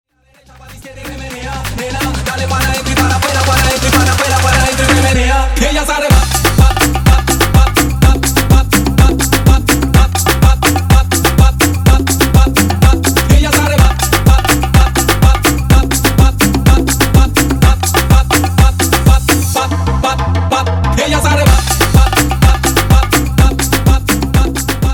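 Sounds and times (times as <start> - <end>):
afro remix music: 0.2 - 24.9.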